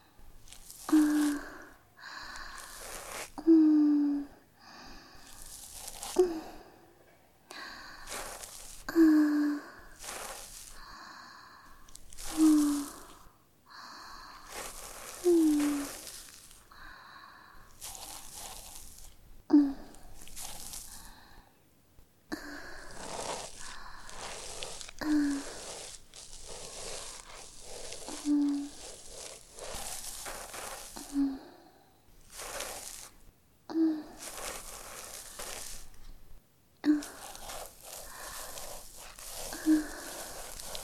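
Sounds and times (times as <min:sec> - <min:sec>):
looped breathing: 0:00.0 - 0:03.6, 0:04.2 - 0:18.8, 0:19.8 - 0:21.6, 0:22.3 - 0:33.1, 0:36.9 - 0:40.8
ear cleaning: 0:00.4 - 0:03.4, 0:05.2 - 0:06.6, 0:07.6 - 0:10.8, 0:11.7 - 0:13.3, 0:14.1 - 0:16.7, 0:17.6 - 0:19.2, 0:20.0 - 0:21.1, 0:22.4 - 0:31.4, 0:32.1 - 0:33.3, 0:34.0 - 0:36.2, 0:36.8 - 0:40.8.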